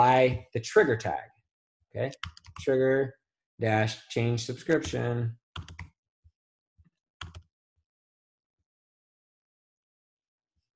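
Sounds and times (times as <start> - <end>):
speech: 0.0 - 1.3, 1.9 - 5.7
typing on a computer keyboard: 2.2 - 2.6, 4.7 - 5.9, 7.2 - 7.5.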